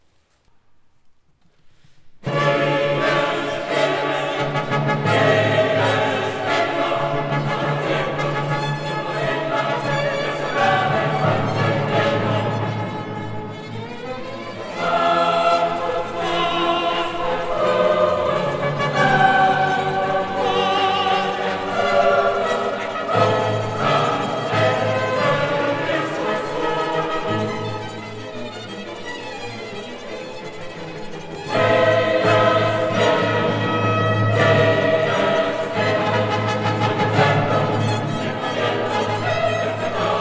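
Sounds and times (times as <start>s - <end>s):
requiem music: 2.3s - 40.1s.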